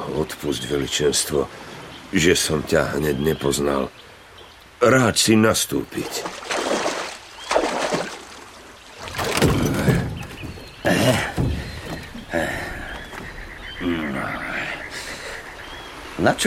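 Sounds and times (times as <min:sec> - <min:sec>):
soft watery wash: 0:00.0 - 0:16.4
speech: 0:00.2 - 0:04.1, 0:04.8 - 0:06.4, 0:11.1 - 0:11.4, 0:16.2 - 0:16.4
oars splashing as a small rowboat is pulled across water: 0:05.7 - 0:16.4.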